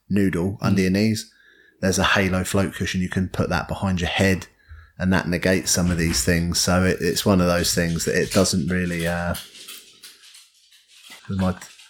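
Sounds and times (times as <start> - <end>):
speech: 0.1 - 9.6, 11.3 - 11.7
dog claws tapping on wooden floor: 7.6 - 11.8.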